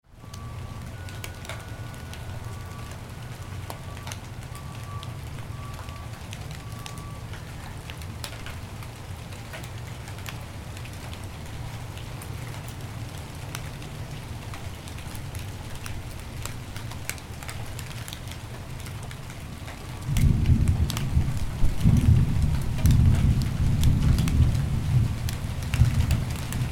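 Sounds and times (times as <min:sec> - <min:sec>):
light rain: 0:00.1 - 0:26.7
thunder: 0:19.9 - 0:26.7.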